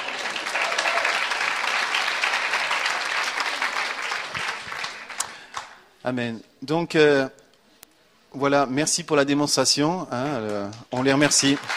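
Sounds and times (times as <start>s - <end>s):
audience applauding: 0.0s - 5.8s, 10.3s - 11.7s
speech: 6.0s - 7.4s, 8.3s - 11.7s.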